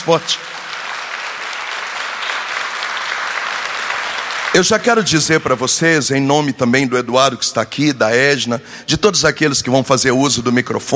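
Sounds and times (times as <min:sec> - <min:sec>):
speech: 0:00.0 - 0:00.6, 0:04.6 - 0:10.9
audience applause: 0:00.0 - 0:05.6.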